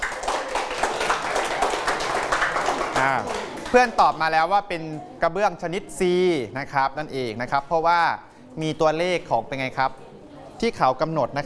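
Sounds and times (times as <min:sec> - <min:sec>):
classroom applause: 0:00.0 - 0:04.0
speech: 0:03.0 - 0:10.0, 0:10.6 - 0:11.4.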